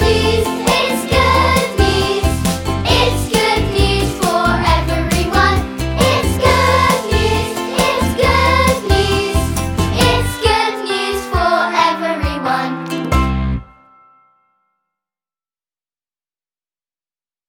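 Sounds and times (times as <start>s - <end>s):
vocals: 0.0s - 13.1s.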